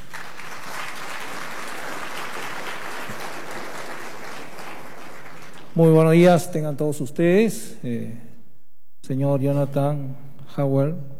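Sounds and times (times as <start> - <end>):
audience applause: 0.0 - 5.9
speech: 5.8 - 8.3, 9.1 - 11.1.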